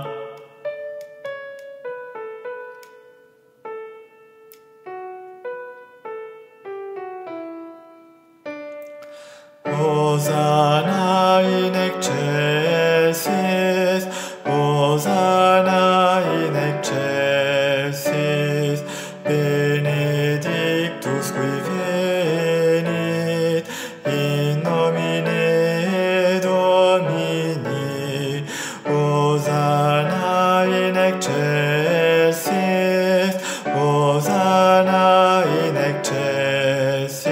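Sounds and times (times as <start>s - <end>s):
alto voices singing a guide part of a sacred choral piece: 9.6s - 37.2s.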